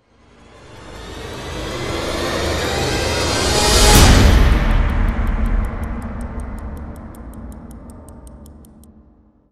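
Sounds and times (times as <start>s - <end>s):
quick swell hit: 1.3s - 7.7s.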